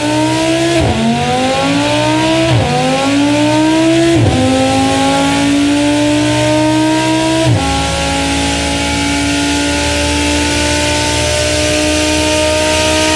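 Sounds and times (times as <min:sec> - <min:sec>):
engine: 0:00.0 - 0:13.1.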